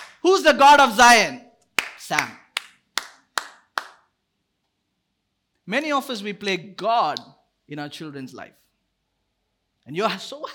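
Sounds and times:
hand claps: 0.0 - 0.2, 1.8 - 4.1
speech: 0.2 - 1.4, 2.1 - 2.4, 5.7 - 8.6, 9.8 - 10.5.

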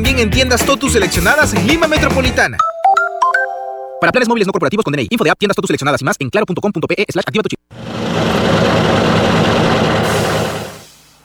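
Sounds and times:
speech: 0.0 - 2.7, 4.0 - 9.0
heavy truck engine running: 7.7 - 11.2.

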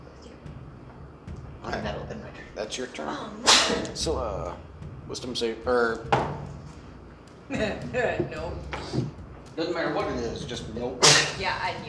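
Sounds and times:
speech: 1.6 - 6.4, 7.5 - 11.8
sneeze: 3.4 - 3.9, 11.0 - 11.4.

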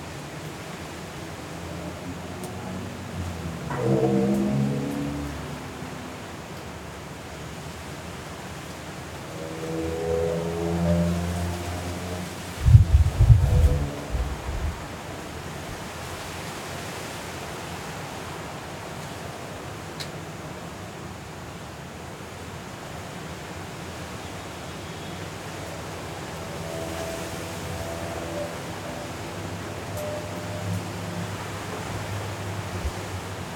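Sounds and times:
Hurricane Kay wind and rain roaring in Los Cabos: 0.0 - 24.4, 25.2 - 33.5
low wavering tones: 1.6 - 7.3, 9.0 - 15.7, 25.6 - 33.3.

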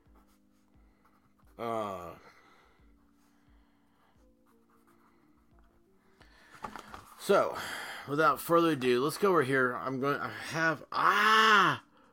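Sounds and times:
pen scratching on paper: 0.0 - 1.6, 4.4 - 5.5
speech: 1.6 - 2.3, 7.2 - 11.9.

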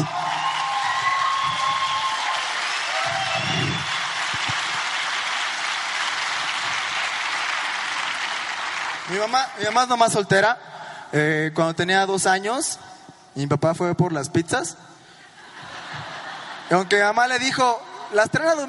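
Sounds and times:
audience applause: 0.0 - 9.8
speech: 9.1 - 15.0, 16.7 - 18.6
laughter: 15.2 - 18.3.

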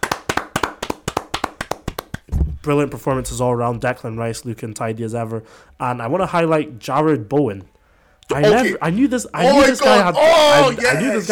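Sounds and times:
people clapping: 0.0 - 2.3
speech: 2.6 - 7.7, 8.3 - 11.3.

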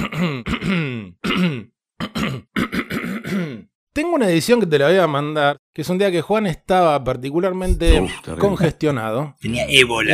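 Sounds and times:
throat clearing: 0.0 - 3.8
speech: 4.2 - 10.1.

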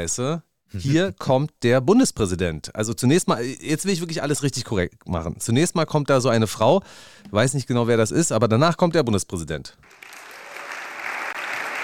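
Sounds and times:
speech: 0.0 - 10.2
crowd applauding: 9.8 - 11.8.

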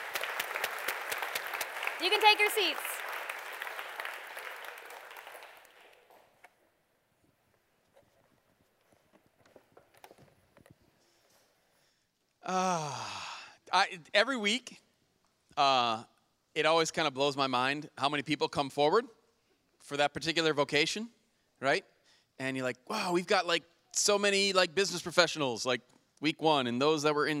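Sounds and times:
round of applause: 0.0 - 6.4
speech: 2.0 - 2.9, 12.5 - 13.1, 13.7 - 14.8, 15.6 - 19.2, 19.8 - 27.3.

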